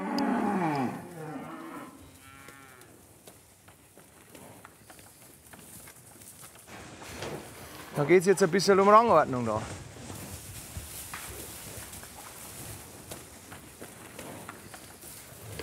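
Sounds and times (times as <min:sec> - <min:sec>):
cattle herd mooing on a pasture: 0:00.0 - 0:02.9
hooves clattering: 0:00.1 - 0:15.6
speech: 0:08.0 - 0:09.8.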